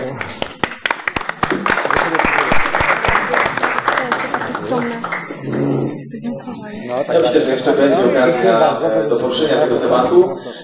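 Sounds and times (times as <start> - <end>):
audience applause: 0.0 - 5.4
speech: 6.4 - 10.6.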